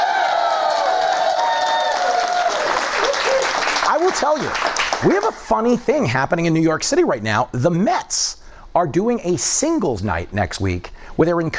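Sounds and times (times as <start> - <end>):
whoops and shouts: 0.0 - 3.6
New York City studio audience cheering and applauding: 0.0 - 5.4
speech: 4.0 - 11.5.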